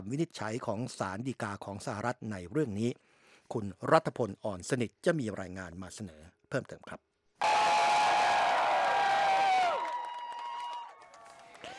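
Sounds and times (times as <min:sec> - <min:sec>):
speech: 0:00.0 - 0:07.1
crowd cheering outside the US Supreme Court in Washington: 0:07.4 - 0:11.7.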